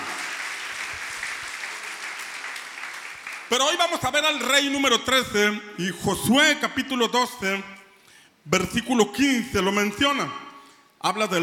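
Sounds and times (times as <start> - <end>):
crowd audience applause: 0.0 - 3.5
speech: 3.5 - 7.8, 8.4 - 10.4, 11.0 - 11.4.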